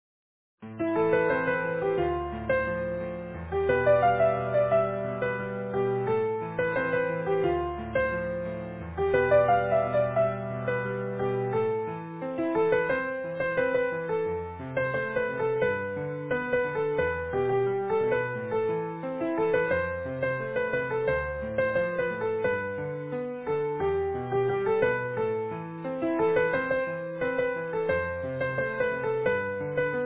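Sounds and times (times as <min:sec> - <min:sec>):
easy piano: 0:00.6 - 0:30.0.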